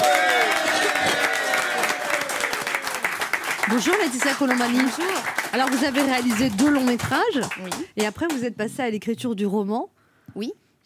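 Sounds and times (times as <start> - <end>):
studio audience applause greeting a guest: 0.0 - 8.0
speech: 3.7 - 10.8.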